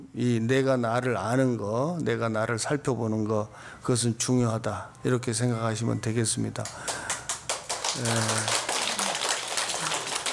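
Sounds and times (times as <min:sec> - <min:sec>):
speech: 0:00.2 - 0:07.2, 0:08.0 - 0:08.6
lecture audience clapping: 0:06.6 - 0:10.3.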